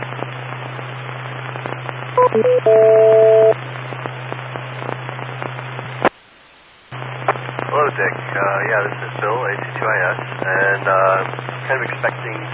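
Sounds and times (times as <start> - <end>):
radio channel hiss: 0.0 - 12.5
low hum: 0.5 - 6.0
speech: 2.2 - 3.4, 7.9 - 12.5
electronic radio beeps: 2.2 - 3.6.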